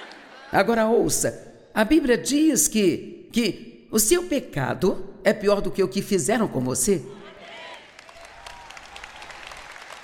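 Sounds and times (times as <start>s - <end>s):
speech: 0.5s - 7.2s
audience clapping: 7.4s - 10.0s.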